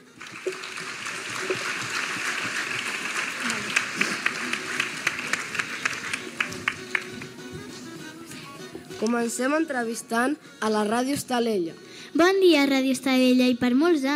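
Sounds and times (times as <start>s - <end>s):
audience applause: 0.0s - 7.4s
speech: 9.0s - 14.1s.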